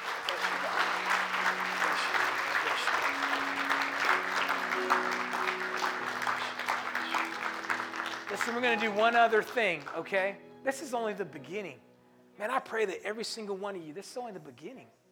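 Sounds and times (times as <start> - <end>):
audience clapping hands: 0.0 - 10.2
soft sustained low keyboard notes: 0.0 - 13.2
speech: 8.5 - 15.0.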